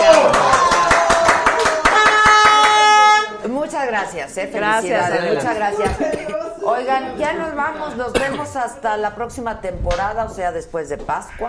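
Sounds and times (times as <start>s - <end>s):
rhythmic clapping: 0.0s - 3.3s
sustained horn-like tone: 1.9s - 3.5s
speech: 4.0s - 11.4s.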